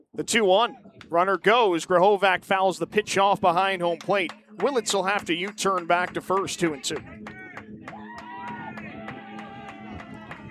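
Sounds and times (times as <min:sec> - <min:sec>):
speech: 0:00.1 - 0:07.4
rhythmic claps or stomps: 0:03.9 - 0:10.4
baseball crowd cheering: 0:04.0 - 0:10.4.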